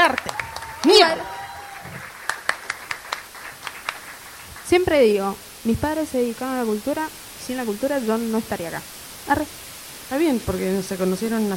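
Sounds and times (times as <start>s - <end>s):
sparse audience claps: 0.0s - 4.7s
soft noise: 0.0s - 11.5s
speech: 4.7s - 11.5s.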